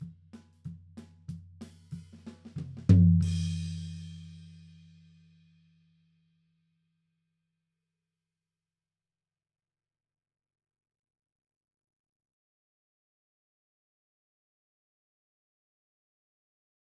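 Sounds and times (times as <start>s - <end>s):
tom drums: 0.0s - 4.1s.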